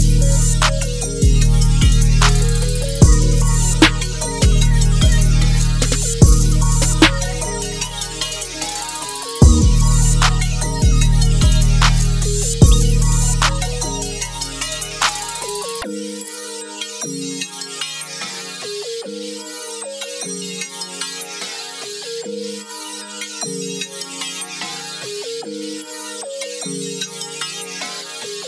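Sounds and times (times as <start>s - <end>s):
alt trap beat: 0.0s - 15.8s.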